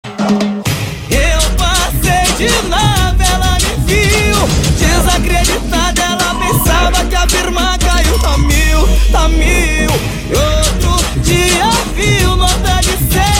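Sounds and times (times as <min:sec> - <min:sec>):
music: 0:00.0 - 0:13.3.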